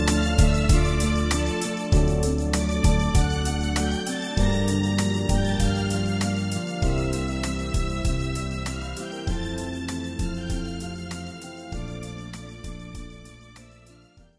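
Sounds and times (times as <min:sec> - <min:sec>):
brass music: 0:00.0 - 0:11.1.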